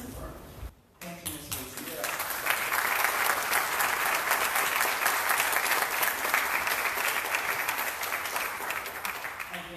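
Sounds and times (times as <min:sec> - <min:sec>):
crowd applauding: 0:01.5 - 0:09.7.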